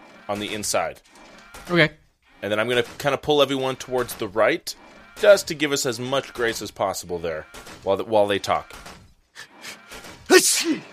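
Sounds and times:
speech: 0.3s - 8.9s, 10.4s - 10.9s
sneeze: 10.3s - 10.9s.

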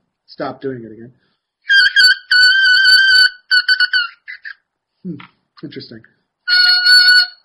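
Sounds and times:
speech: 0.3s - 1.8s, 5.0s - 6.2s
bagpipe chanter reed buzzing: 1.7s - 4.6s, 6.5s - 7.4s.

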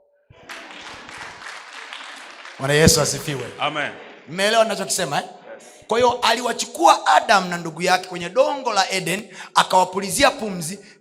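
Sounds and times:
congregation applause during a sermon: 0.3s - 5.2s
speech: 2.6s - 10.9s.

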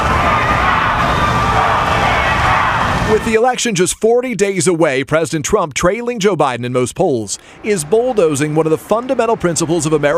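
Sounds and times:
crowd booing and chanting at an election-season political protest: 0.0s - 3.5s, 7.4s - 10.1s
speech: 3.1s - 10.1s.

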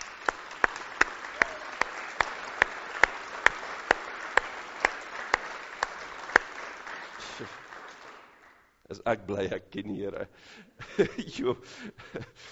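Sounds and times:
audience applause: 0.0s - 8.7s
speech: 7.4s - 7.6s, 8.9s - 12.5s.

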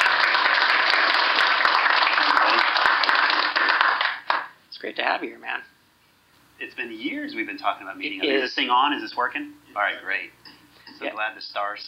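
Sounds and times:
audience applause welcoming a speaker onto the stage at a MicroConf business conference: 0.0s - 4.6s
speech: 4.9s - 5.8s, 6.6s - 11.8s.

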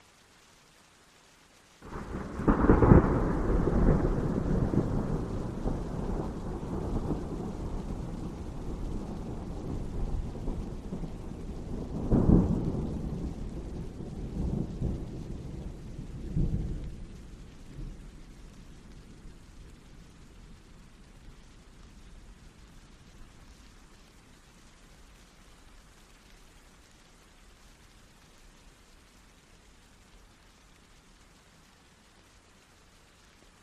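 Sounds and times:
rain: 0.0s - 33.6s.

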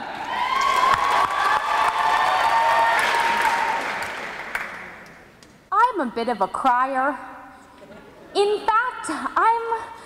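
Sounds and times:
audience applause for a poet at a spoken-word event: 0.0s - 5.1s
speech: 6.2s - 7.3s, 7.9s - 10.0s.

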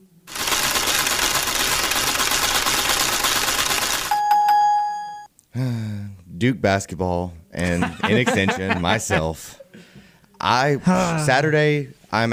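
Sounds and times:
prize wheel spinning and clicking: 0.3s - 4.6s
speech: 6.4s - 9.6s, 10.4s - 12.3s
laughter: 7.6s - 9.6s.

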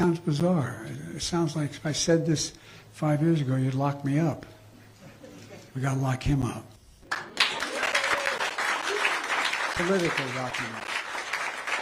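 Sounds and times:
speech: 0.1s - 4.6s, 5.8s - 6.7s, 9.8s - 10.9s
crowd applauding: 7.1s - 11.8s
faint cheer: 7.2s - 9.6s.

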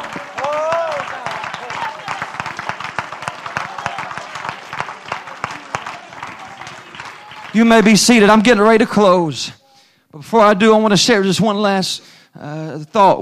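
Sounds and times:
audience clapping hands: 0.0s - 8.8s
speech: 7.6s - 9.6s, 10.2s - 13.2s.

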